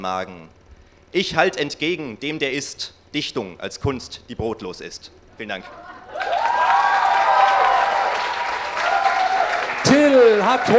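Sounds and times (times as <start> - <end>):
speech: 0.0 - 6.3, 9.9 - 10.7
laughter: 5.6 - 6.6
audience applause: 6.0 - 10.7.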